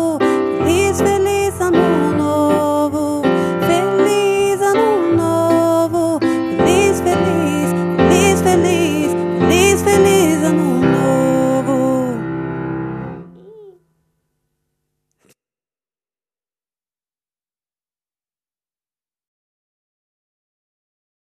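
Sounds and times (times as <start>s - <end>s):
Portuguese songs: 0.0s - 12.3s.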